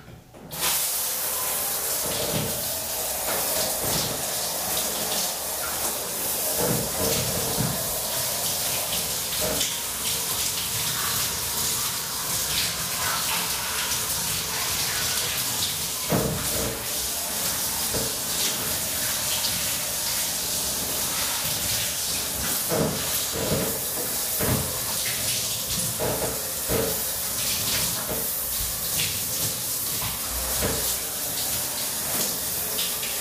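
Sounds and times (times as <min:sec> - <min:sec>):
shower running: 0:00.0 - 0:33.1.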